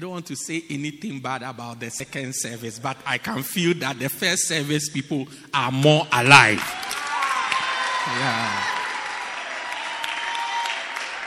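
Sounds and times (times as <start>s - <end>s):
speech: 0.0s - 7.0s, 8.1s - 8.8s
audience clapping: 6.5s - 11.2s.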